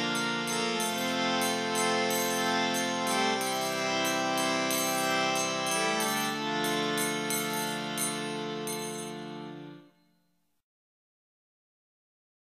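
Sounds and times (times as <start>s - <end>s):
easy harmonium melody: 0.0s - 10.0s.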